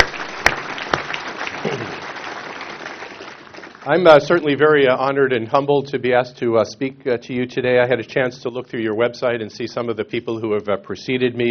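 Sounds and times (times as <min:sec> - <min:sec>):
audience applause: 0:00.0 - 0:04.8
speech: 0:03.9 - 0:11.4.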